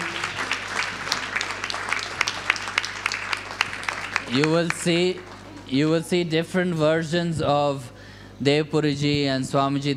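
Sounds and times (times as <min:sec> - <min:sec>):
audience applause: 0:00.0 - 0:05.7
speech: 0:04.3 - 0:09.9.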